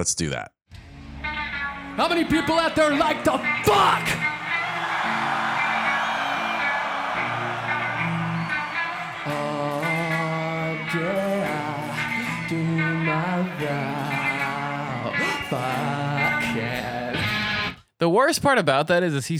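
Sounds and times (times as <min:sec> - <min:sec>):
speech: 0:00.0 - 0:00.6, 0:02.0 - 0:04.3, 0:18.0 - 0:19.3
live rock music with sustained guitar riff: 0:00.7 - 0:17.8
large crowd cheering and roaring: 0:02.0 - 0:17.4.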